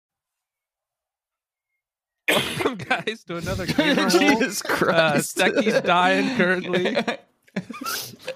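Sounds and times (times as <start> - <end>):
huge cough: 2.3 - 3.0
speech: 2.4 - 8.2
laughter: 2.7 - 8.3.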